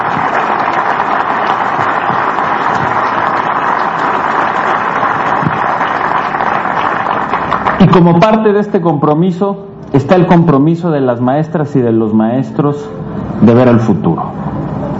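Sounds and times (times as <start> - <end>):
large audience applause for teachers: 0.0 - 8.2
speech: 7.9 - 14.4.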